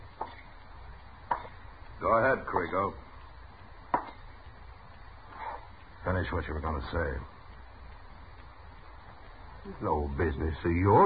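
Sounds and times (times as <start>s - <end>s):
slap across the face: 1.3s - 1.6s
speech: 2.1s - 3.0s, 6.0s - 7.4s, 9.6s - 11.0s.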